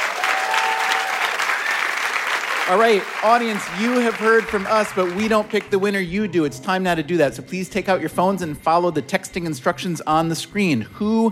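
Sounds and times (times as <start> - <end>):
audience applause: 0.0 - 5.8
speech: 2.7 - 11.3.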